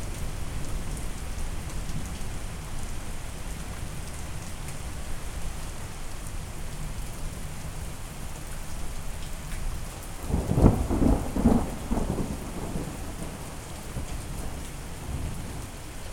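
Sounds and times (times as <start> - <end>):
relaxing rain: 0.0 - 16.1
loud thunder: 10.3 - 13.4.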